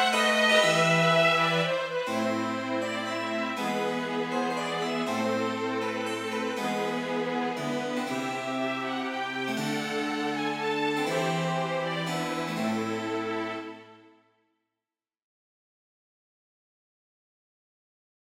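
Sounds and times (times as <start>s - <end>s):
harpsichord: 0.0s - 13.8s
string quartet: 0.0s - 14.0s.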